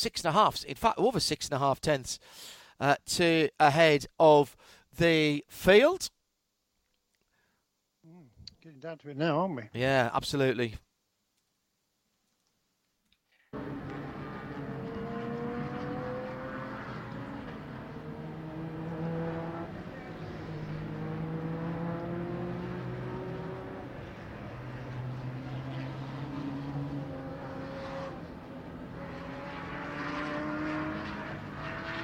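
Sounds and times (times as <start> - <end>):
speech: 0.0 - 6.2, 8.6 - 10.8
race car engines roaring: 13.6 - 32.0.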